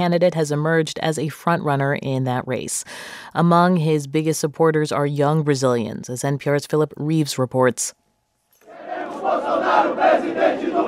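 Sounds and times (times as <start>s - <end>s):
speech: 0.0s - 8.0s
crowd cheering at an airport: 8.6s - 10.8s.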